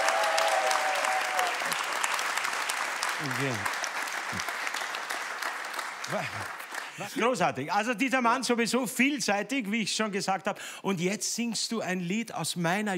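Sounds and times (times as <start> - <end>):
audience applause: 0.0 - 7.6
speech: 3.2 - 4.5, 6.1 - 12.9.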